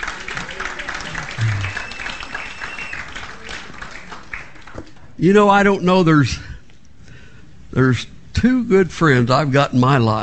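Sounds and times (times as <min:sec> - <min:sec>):
audience applause: 0:00.0 - 0:04.6
speech: 0:05.2 - 0:06.5, 0:07.7 - 0:10.2.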